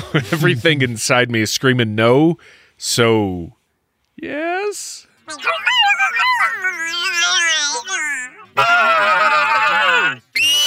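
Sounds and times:
speech: 0.1 - 3.6, 4.2 - 10.3
voice imitating a Bigfoot call: 5.3 - 10.6.

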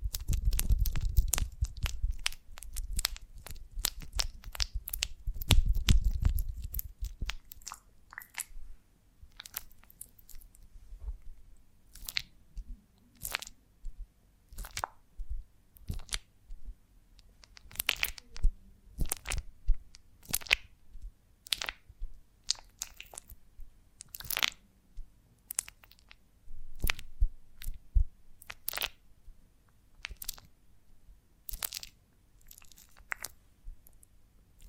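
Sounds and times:
honeycomb on a branch bitten and chewed: 0.0 - 8.5, 9.3 - 10.6, 11.9 - 12.3, 13.2 - 13.6, 14.5 - 15.0, 15.8 - 16.2, 17.4 - 19.5, 20.2 - 20.7, 21.4 - 21.9, 22.5 - 23.4, 24.0 - 24.6, 25.5 - 26.2, 28.4 - 29.0, 30.0 - 30.5, 31.5 - 34.0.

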